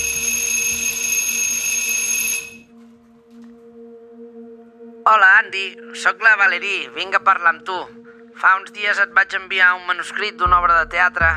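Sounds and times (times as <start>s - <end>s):
doorbell buzzing: 0.0s - 2.7s
speech: 5.1s - 11.3s.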